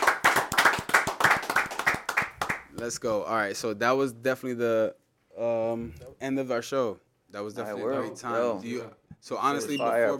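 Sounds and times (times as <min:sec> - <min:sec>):
group clapping hands: 0:00.0 - 0:02.9
speech: 0:02.8 - 0:10.1.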